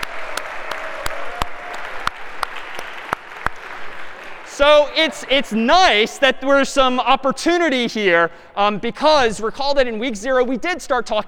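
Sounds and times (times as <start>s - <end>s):
scattered audience applause: 0.0s - 6.0s
speech: 4.6s - 11.2s.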